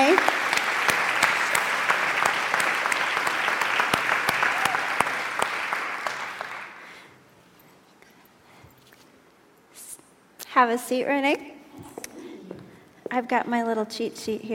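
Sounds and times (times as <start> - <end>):
large audience of women applauding at a church gathering: 0.0 - 7.0
speech: 10.6 - 11.5, 13.1 - 14.5.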